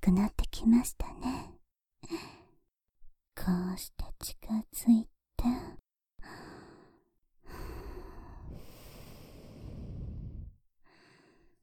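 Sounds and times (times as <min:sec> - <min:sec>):
speech: 0:00.1 - 0:01.4, 0:03.5 - 0:05.0
breath blown close to the microphone: 0:07.5 - 0:10.6.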